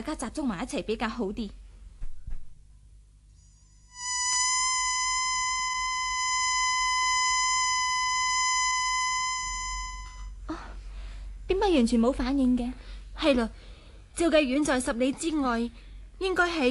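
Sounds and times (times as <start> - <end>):
speech: 0.0 - 1.6, 11.8 - 16.6
emergency whistle blown: 3.9 - 10.3.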